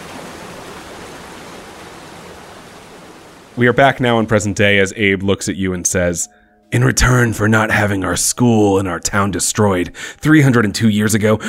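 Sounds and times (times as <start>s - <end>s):
steady rain pouring: 0.0s - 4.6s
speech: 3.6s - 11.4s.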